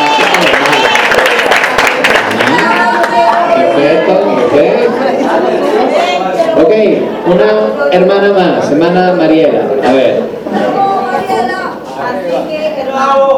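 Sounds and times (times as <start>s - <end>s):
church congregation clapping during a Christian ethics class: 0.0s - 4.0s
overlapping chatter and voices: 0.0s - 13.3s
speech: 7.3s - 10.3s.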